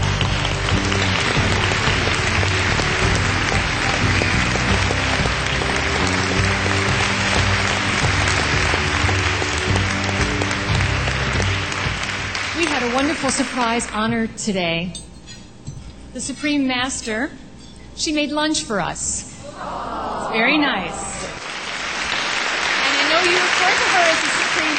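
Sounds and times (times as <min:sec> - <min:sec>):
audience applause: 0:00.0 - 0:13.9, 0:19.6 - 0:24.7
speech: 0:13.3 - 0:15.1, 0:16.2 - 0:17.4, 0:18.0 - 0:21.2.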